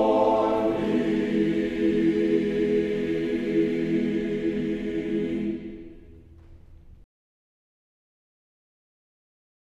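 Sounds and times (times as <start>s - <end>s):
choir singing: 0.0s - 6.2s.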